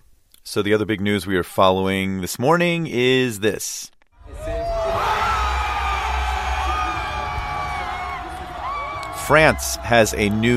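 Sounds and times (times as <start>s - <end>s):
speech: 0.5s - 4.5s, 9.3s - 10.5s
crowds cheering outdoors in front of the Louvre Museum: 4.2s - 10.5s.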